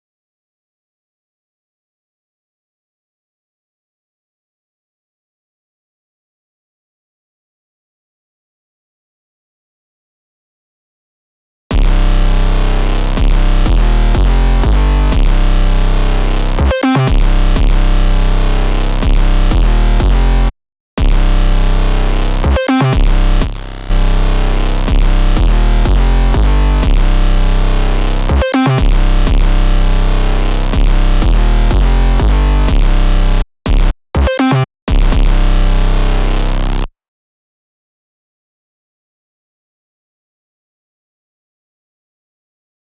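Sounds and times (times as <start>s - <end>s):
bass: 11.7s - 36.9s.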